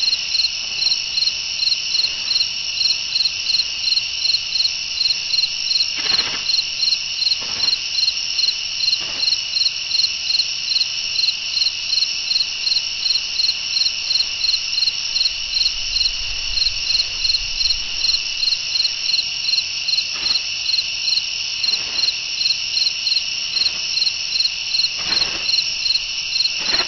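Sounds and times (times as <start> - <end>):
cricket chirping: 0.0 - 26.8.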